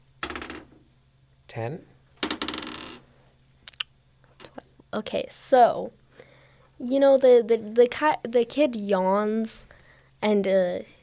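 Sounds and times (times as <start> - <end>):
dice clattering across a hard table: 0.2 - 0.8, 2.2 - 3.0
speech: 1.5 - 2.0, 4.9 - 6.0, 6.8 - 11.0.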